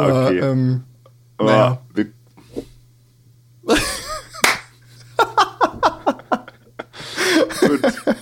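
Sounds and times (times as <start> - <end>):
speech: 0.0 - 2.7
laughter: 3.7 - 8.2
single hand clap for recording sync: 4.4 - 4.7.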